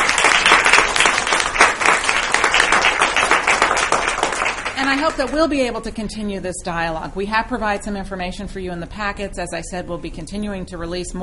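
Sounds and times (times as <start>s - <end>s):
audience applause: 0.0s - 5.4s
speech: 4.9s - 11.2s.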